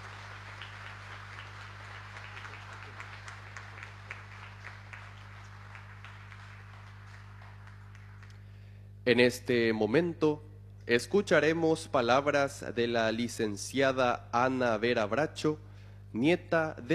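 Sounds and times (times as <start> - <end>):
audience applause: 0.0 - 8.4
speech: 9.1 - 16.9.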